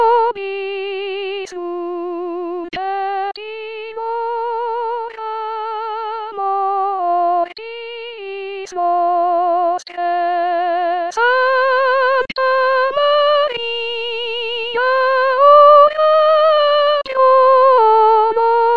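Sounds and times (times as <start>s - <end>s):
soprano singing: 0.0s - 18.7s
chorale singing: 11.9s - 18.7s.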